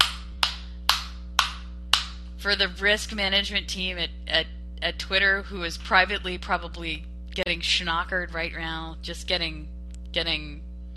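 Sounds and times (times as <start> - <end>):
hands clapping: 0.0 - 2.2
faint constant electrical hum: 0.0 - 10.9
speech: 2.4 - 10.7.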